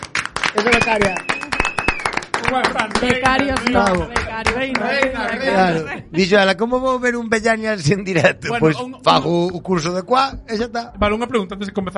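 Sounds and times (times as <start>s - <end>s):
audience applause: 0.0s - 5.6s
speech: 0.5s - 1.4s, 2.4s - 11.9s.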